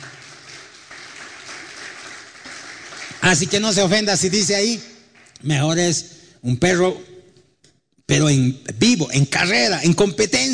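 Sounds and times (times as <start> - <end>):
audience applauding: 0.0 - 5.4
speech: 3.2 - 7.1, 8.1 - 10.5.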